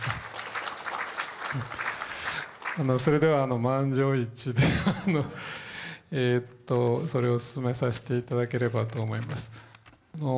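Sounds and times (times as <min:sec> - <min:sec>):
audience applause: 0:00.0 - 0:03.2
speech: 0:01.5 - 0:01.8, 0:02.8 - 0:10.3
laughter: 0:04.6 - 0:05.4.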